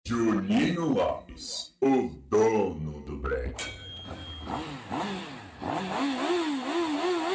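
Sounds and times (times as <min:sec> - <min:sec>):
speech: 0:00.1 - 0:05.3
motorcycle engine revving: 0:04.0 - 0:07.3.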